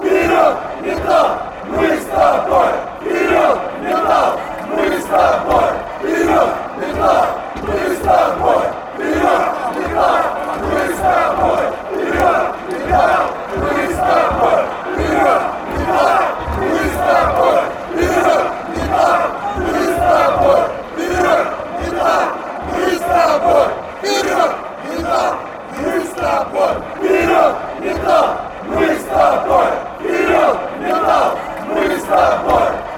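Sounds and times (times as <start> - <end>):
football fans chanting: 0.0 - 32.9.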